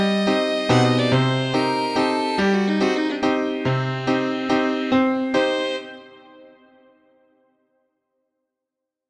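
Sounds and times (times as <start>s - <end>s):
piano playing the note C: 0.0s - 7.0s.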